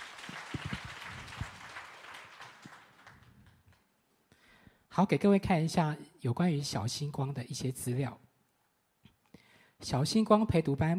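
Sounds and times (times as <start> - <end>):
applause: 0.0 - 3.9
speech: 5.0 - 8.3, 9.8 - 10.9.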